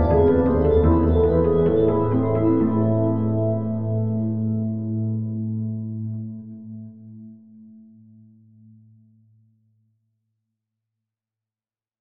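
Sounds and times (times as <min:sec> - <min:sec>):
pipe organ: 0:00.0 - 0:06.3.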